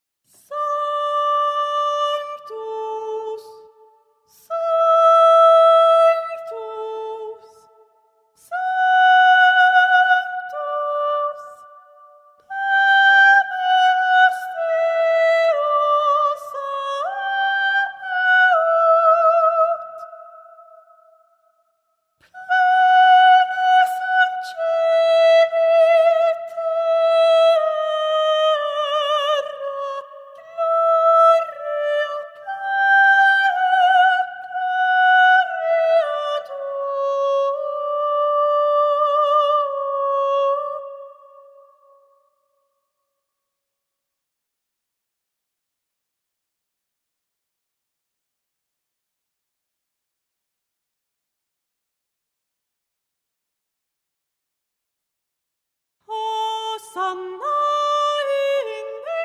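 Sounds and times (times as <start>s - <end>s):
soprano voice: 0.4s - 7.7s, 8.4s - 11.6s, 12.5s - 20.8s, 22.2s - 41.9s, 56.1s - 59.2s.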